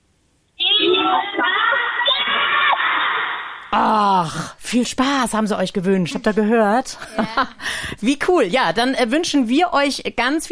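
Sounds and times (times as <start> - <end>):
children cheering and shouting: 0.6 - 3.6
speech: 3.7 - 10.5.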